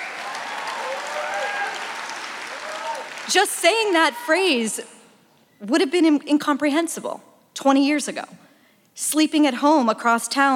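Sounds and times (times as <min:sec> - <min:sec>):
audience applause at a public debate event: 0:00.0 - 0:04.1
speech: 0:03.3 - 0:05.0, 0:05.6 - 0:08.4, 0:09.0 - 0:10.5.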